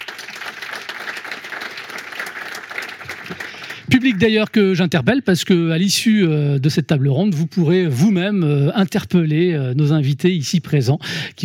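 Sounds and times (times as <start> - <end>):
audience applause: 0.0 - 4.2
speech: 3.9 - 11.4.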